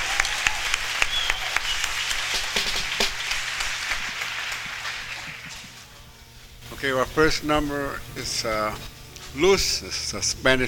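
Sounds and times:
audience round of applause: 0:00.0 - 0:05.7
speech: 0:06.8 - 0:10.6.

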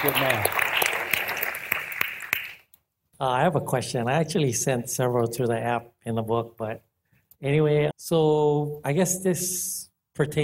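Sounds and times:
speech: 0:00.0 - 0:00.6, 0:03.2 - 0:10.4
audience applause: 0:00.0 - 0:02.6.

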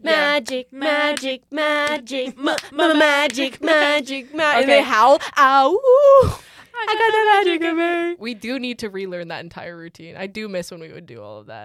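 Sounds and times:
speech: 0:00.0 - 0:11.6
rhythmic hand clapping: 0:00.2 - 0:03.5.

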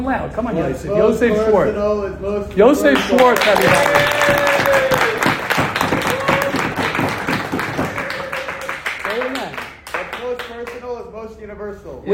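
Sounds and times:
speech: 0:00.0 - 0:05.2
clapping: 0:02.9 - 0:10.9.

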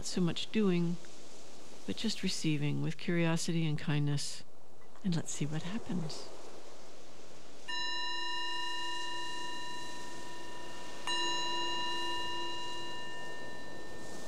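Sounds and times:
speech: 0:00.0 - 0:01.2, 0:01.9 - 0:06.4
meditation bell ringing: 0:07.7 - 0:14.2.

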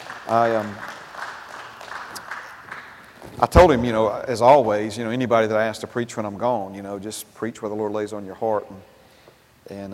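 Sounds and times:
crowd clapping: 0:00.0 - 0:03.8
speech: 0:00.3 - 0:00.9, 0:03.3 - 0:08.9, 0:09.7 - 0:09.9.

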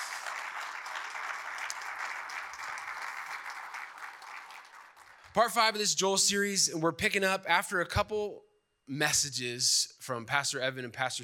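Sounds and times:
crowd applause: 0:00.0 - 0:05.3
speech: 0:05.4 - 0:11.2.

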